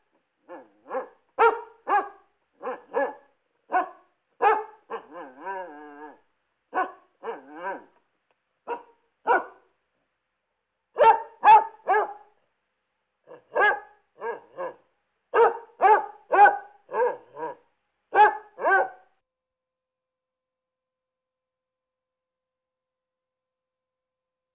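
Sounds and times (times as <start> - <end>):
Basset Hound barking: 0.4 - 8.0, 8.6 - 9.7, 11.0 - 12.4, 13.3 - 19.1.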